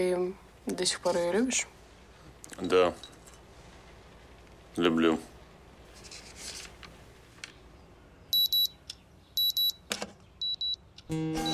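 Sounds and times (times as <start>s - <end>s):
speech: 0.0s - 1.8s, 2.5s - 3.2s, 4.8s - 5.3s, 11.1s - 11.5s
alarm clock ringing with shrill high electronic beeps: 8.3s - 8.7s, 9.4s - 9.8s, 10.4s - 10.8s, 11.4s - 11.5s.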